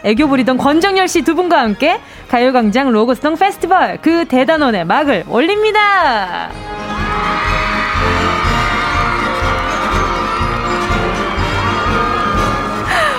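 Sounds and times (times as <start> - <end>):
speech: 0.0 - 7.3
crowd cheering and shouting: 6.5 - 13.1.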